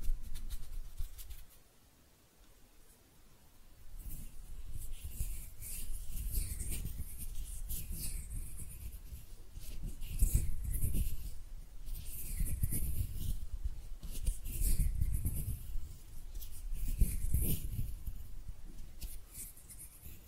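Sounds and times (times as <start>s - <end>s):
hands rubbing, brushing and scraping: 0.0s - 1.6s, 4.0s - 20.2s.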